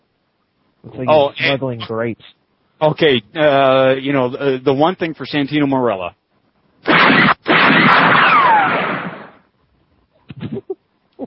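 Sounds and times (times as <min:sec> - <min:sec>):
speech: 0:00.8 - 0:06.2
gunshot like an old Western gun: 0:06.8 - 0:09.4.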